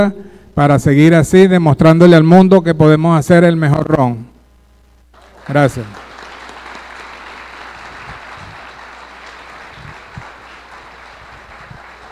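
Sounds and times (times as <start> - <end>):
speech: 0.0 - 4.3, 5.5 - 6.1
audience applause at the close of a rum-making congress session: 5.2 - 12.1.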